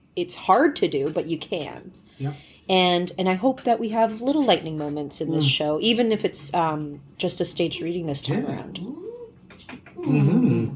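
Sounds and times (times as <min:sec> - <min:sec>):
speech: 0:00.2 - 0:09.0, 0:09.6 - 0:10.7
dog whimpering: 0:07.8 - 0:09.4.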